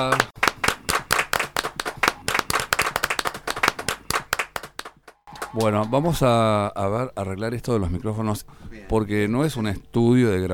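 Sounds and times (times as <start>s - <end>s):
speech: 0.0s - 0.4s, 5.5s - 10.5s
applause, people clapping: 0.0s - 6.2s.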